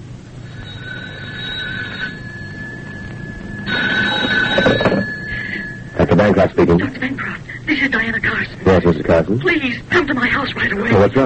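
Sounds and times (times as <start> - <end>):
telephone bell ringing: 0.4 - 7.5
speech: 6.2 - 7.2, 7.9 - 11.2.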